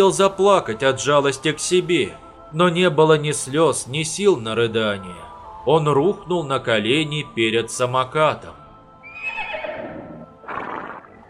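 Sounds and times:
speech: 0.0s - 8.6s
small horse neighing: 9.0s - 11.2s.

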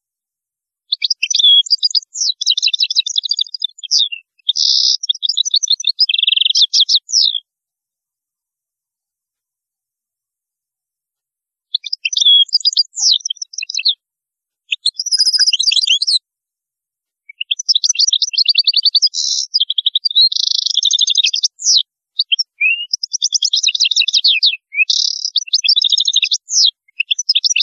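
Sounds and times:
European goldfinch song: 0.8s - 7.5s, 11.7s - 14.0s, 14.6s - 16.2s, 17.2s - 27.6s.

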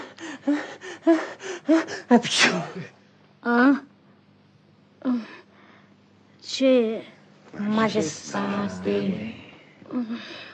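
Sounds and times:
speech: 0.4s - 3.9s, 6.6s - 10.5s
person sneezing: 2.2s - 2.9s.

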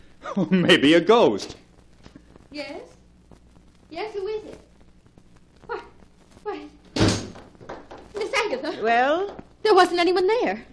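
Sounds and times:
speech: 0.4s - 1.6s, 2.5s - 3.0s, 3.9s - 4.6s, 8.5s - 10.7s
door opening late at night: 6.9s - 7.5s.

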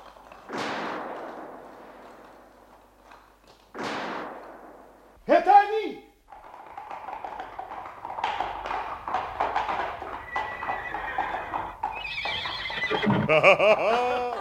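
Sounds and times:
hooves clip-clopping: 0.0s - 5.2s, 6.3s - 14.3s
horse whinnying: 6.3s - 13.4s
laughter: 13.0s - 14.3s.

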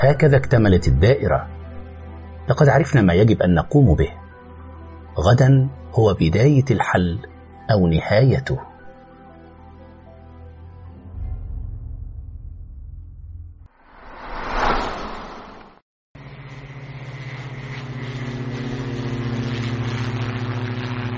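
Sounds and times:
speech: 0.0s - 1.6s, 2.5s - 4.2s, 5.2s - 8.7s
airplane cabin engine drone: 13.9s - 21.1s.

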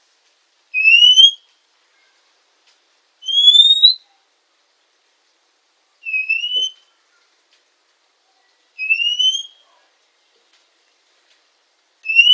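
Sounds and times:
female Oriental magpie-robin whistled notes: 0.8s - 1.5s, 3.2s - 4.1s, 6.0s - 6.9s, 8.8s - 9.7s, 12.0s - 12.3s.

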